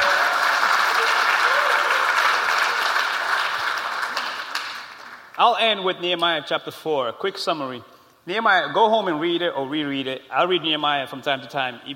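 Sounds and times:
audience applause: 0.0 - 5.4
speech: 5.4 - 11.9.

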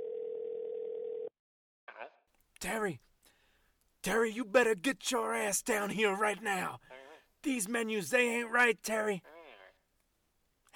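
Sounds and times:
telephone dial tone: 0.0 - 1.3
speech: 2.0 - 3.1, 4.0 - 9.3.

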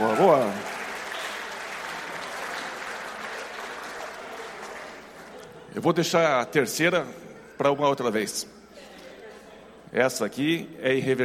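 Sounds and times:
audience clapping: 0.0 - 5.6
speech: 0.2 - 0.7, 5.8 - 8.6, 9.9 - 11.2.

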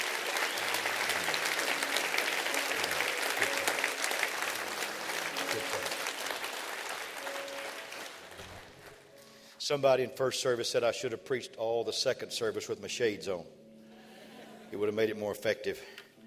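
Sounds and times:
audience applause: 0.0 - 9.0
speech: 9.7 - 13.6, 14.7 - 16.0.

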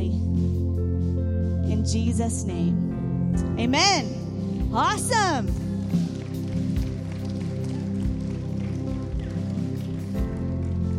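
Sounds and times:
sustained low tonal background: 0.0 - 10.9
speech: 1.8 - 6.0
crowd clapping and cheering: 5.3 - 10.9.

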